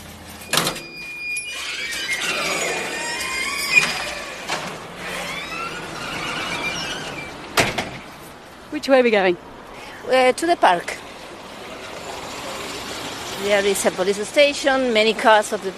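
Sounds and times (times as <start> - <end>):
lift descending to street level: 0.3 - 7.9
clunks: 0.4 - 8.2
speech: 8.8 - 11.0, 13.4 - 15.7.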